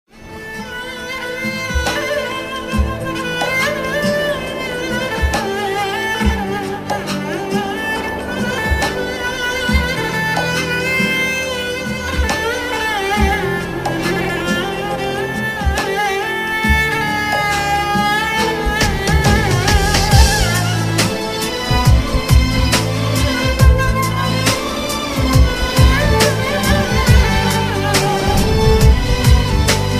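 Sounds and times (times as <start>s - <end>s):
sad violin: 0.1s - 29.9s.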